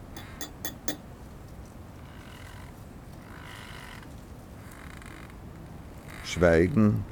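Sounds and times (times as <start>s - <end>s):
teacup being set down: 0.0s - 1.1s
espresso cup set down: 0.2s - 1.0s
speech: 6.3s - 7.1s.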